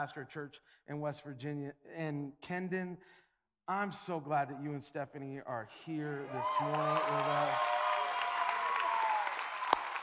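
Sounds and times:
speech: 0:00.0 - 0:07.9
golf clap, quiet applause: 0:06.4 - 0:10.0.

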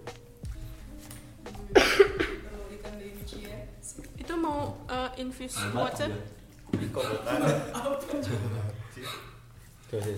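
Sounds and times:
person coughing: 0:01.8 - 0:02.4, 0:06.8 - 0:07.8
speech: 0:05.2 - 0:09.2, 0:09.9 - 0:10.1
laughter: 0:06.8 - 0:09.3.

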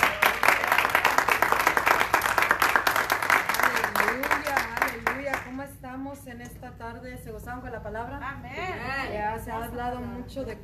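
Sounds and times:
audience applause: 0:00.0 - 0:05.2
speech: 0:06.3 - 0:10.6.

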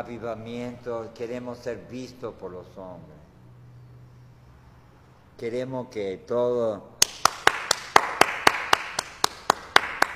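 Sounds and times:
speech: 0:00.0 - 0:03.3, 0:05.4 - 0:06.9
audience clapping: 0:07.0 - 0:10.1.

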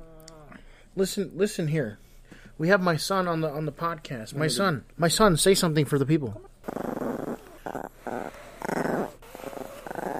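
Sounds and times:
speech: 0:01.0 - 0:02.0, 0:02.6 - 0:06.8
dog growling: 0:06.4 - 0:10.1.

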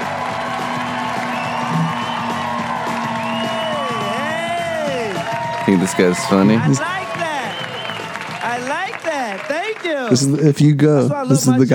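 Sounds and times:
crowd cheering and whooping: 0:00.0 - 0:09.0
crowd clapping: 0:00.0 - 0:10.8
speech: 0:05.7 - 0:07.0, 0:10.1 - 0:11.7.

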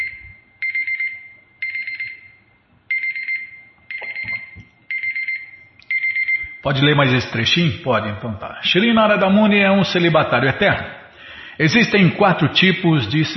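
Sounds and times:
alarm beeping: 0:00.0 - 0:07.2
speech: 0:06.6 - 0:11.0, 0:11.6 - 0:13.3.

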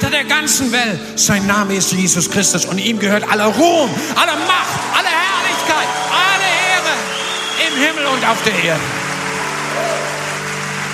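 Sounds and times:
speech: 0:00.2 - 0:05.9, 0:07.8 - 0:09.0
audience applause: 0:04.2 - 0:10.9.

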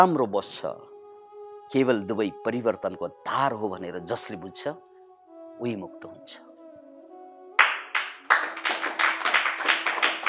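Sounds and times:
speech: 0:00.0 - 0:00.9, 0:01.7 - 0:04.9, 0:05.6 - 0:06.5
audience clapping: 0:07.6 - 0:10.2.

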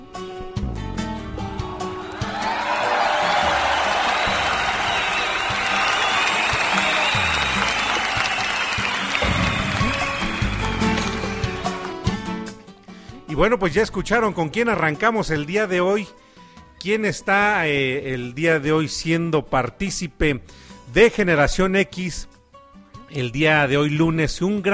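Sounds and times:
crowd cheering: 0:01.1 - 0:12.5
loud applause from a crowd: 0:01.3 - 0:12.4
speech: 0:13.4 - 0:16.2, 0:16.8 - 0:22.3, 0:23.1 - 0:24.7.

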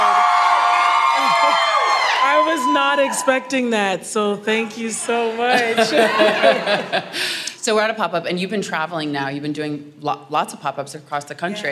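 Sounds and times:
crowd cheering and whooping: 0:00.0 - 0:03.7, 0:05.8 - 0:07.0
speech: 0:02.7 - 0:11.7
laughter: 0:05.1 - 0:07.4.

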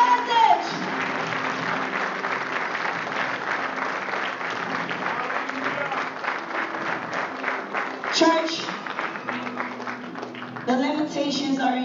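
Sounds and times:
audience clapping: 0:00.0 - 0:11.7.

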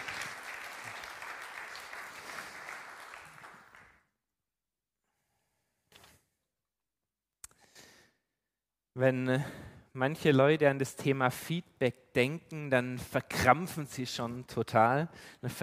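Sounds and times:
crowd clapping: 0:00.0 - 0:04.1
speech: 0:09.0 - 0:15.6.

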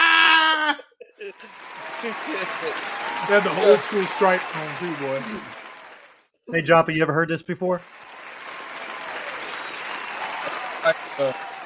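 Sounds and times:
laughter: 0:00.0 - 0:05.5
standing ovation crowd applause: 0:01.2 - 0:07.0, 0:07.7 - 0:11.6
voices shouting: 0:01.4 - 0:06.1, 0:08.9 - 0:11.6
speech: 0:02.0 - 0:05.6, 0:06.5 - 0:08.0, 0:11.2 - 0:11.5.

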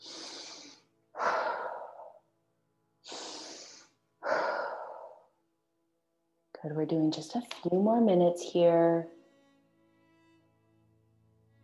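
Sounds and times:
slow guided meditation breathing in through the nose and out through the mouth: 0:00.0 - 0:02.3, 0:03.0 - 0:05.4
speech: 0:06.6 - 0:09.2.

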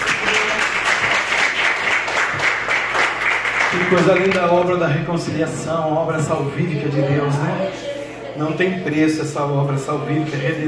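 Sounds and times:
congregation clapping hands: 0:00.0 - 0:04.8
speech: 0:03.8 - 0:10.6.

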